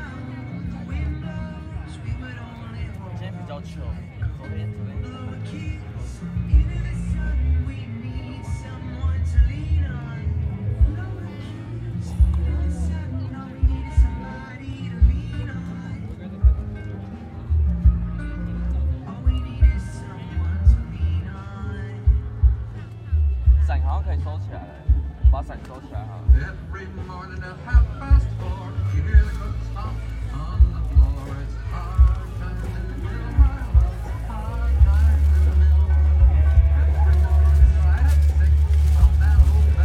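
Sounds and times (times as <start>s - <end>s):
voices: 0.0s - 39.8s
heavy low thumping at the Drifter music festival: 6.3s - 7.2s, 15.0s - 15.5s, 16.4s - 17.0s, 17.6s - 20.0s, 20.6s - 21.3s, 21.9s - 24.2s, 24.8s - 26.7s, 27.7s - 28.4s, 29.0s - 39.8s.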